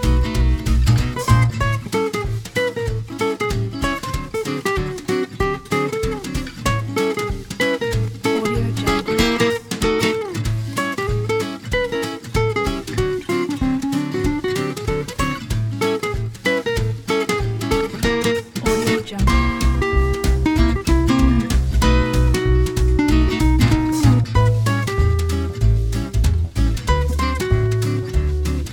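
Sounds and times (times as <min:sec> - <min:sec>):
playful gypsy swing music: 0:00.0 - 0:28.7.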